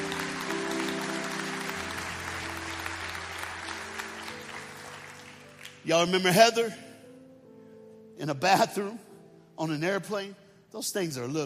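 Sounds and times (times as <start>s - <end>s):
large crowd clapping: 0.0s - 6.2s
speech: 5.8s - 6.9s, 8.2s - 11.4s.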